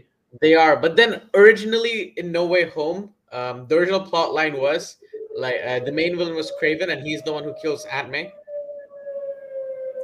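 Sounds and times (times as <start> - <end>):
speech: 0.3 - 8.4
siren sounding a steady mid-pitched tone: 5.0 - 10.0.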